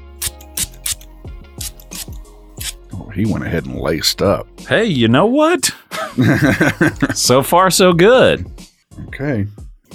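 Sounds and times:
cologne spray bottle spritzing: 0:00.2 - 0:02.8
speech: 0:03.2 - 0:08.6, 0:09.2 - 0:09.6
laughter: 0:05.9 - 0:07.4.

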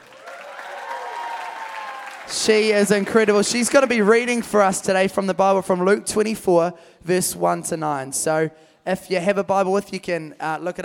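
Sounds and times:
audience applause: 0:00.0 - 0:04.4
speech: 0:02.3 - 0:10.8.

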